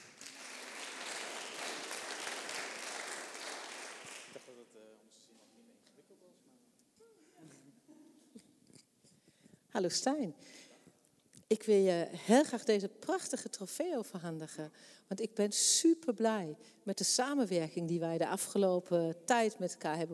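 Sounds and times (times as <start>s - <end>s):
audience clapping: 0.0s - 4.6s
speech: 9.8s - 10.7s, 11.5s - 20.1s.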